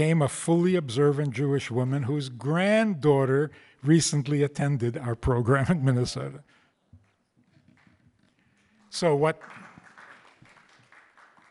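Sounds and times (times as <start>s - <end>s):
speech: 0.0s - 6.5s, 8.9s - 9.6s
audience applause: 8.7s - 11.4s.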